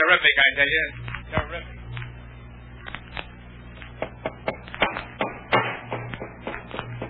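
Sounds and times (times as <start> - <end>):
speech: 0.1 - 1.8
hammering a wooden crate shut: 4.0 - 7.0.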